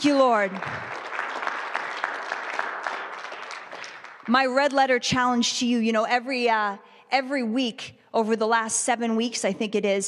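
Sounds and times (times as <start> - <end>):
speech: 0.0 - 0.9, 4.3 - 10.0
audience applause: 0.4 - 4.3.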